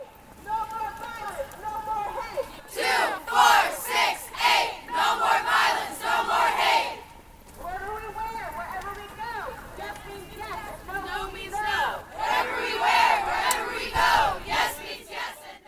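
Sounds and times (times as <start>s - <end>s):
marching crowd chanting protest slogans: 2.1s - 7.2s, 10.2s - 15.6s.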